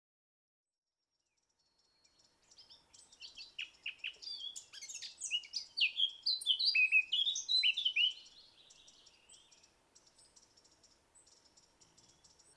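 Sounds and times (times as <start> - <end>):
Eurasian blackcap Sylvia atricapilla warbling and whistling: 4.3 - 8.2.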